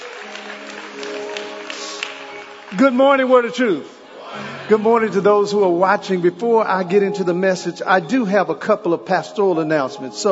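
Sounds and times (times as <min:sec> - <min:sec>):
audience applause: 0:00.0 - 0:05.6
sustained musical tones: 0:00.0 - 0:10.3
speech: 0:02.7 - 0:10.3.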